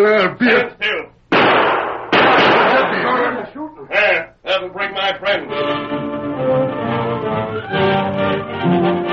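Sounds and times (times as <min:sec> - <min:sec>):
speech: 0:00.0 - 0:01.0, 0:04.6 - 0:09.0
gunshots: 0:01.3 - 0:03.3.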